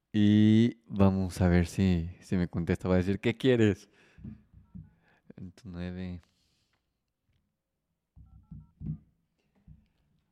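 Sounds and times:
speech: 0.1 - 4.4, 5.4 - 6.3
soft low thuds: 8.2 - 9.1
telephone keypad tones: 8.2 - 9.1.

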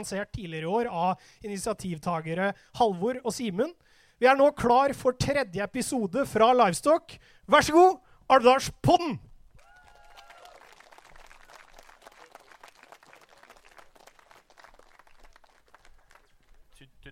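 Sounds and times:
speech: 0.0 - 9.3
audience applause: 9.6 - 16.7.

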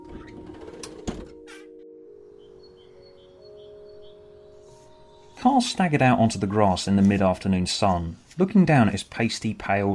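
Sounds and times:
back door opening: 0.0 - 1.8
speech: 5.4 - 9.9.

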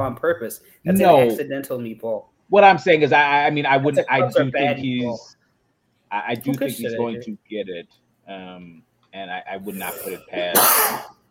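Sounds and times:
speech: 0.0 - 5.4, 6.1 - 11.2
loud sharp sneeze: 9.8 - 11.2.

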